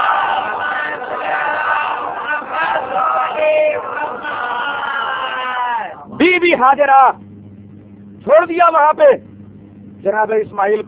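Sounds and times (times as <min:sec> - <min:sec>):
large crowd of worshippers chanting a salawat in unison: 0:00.0 - 0:06.0
speech: 0:06.6 - 0:07.3, 0:08.2 - 0:09.3, 0:10.0 - 0:10.8.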